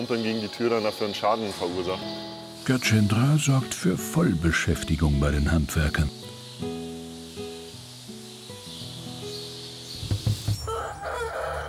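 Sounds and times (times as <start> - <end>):
fighting chickens crowing: 0.0 - 2.8, 10.4 - 11.6
speech: 0.0 - 6.8.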